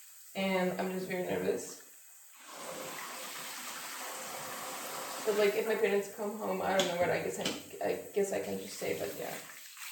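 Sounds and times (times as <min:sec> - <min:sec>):
bathtub filling with running water: 0:00.0 - 0:06.0, 0:08.2 - 0:09.8
speech: 0:00.4 - 0:01.8, 0:05.2 - 0:09.5.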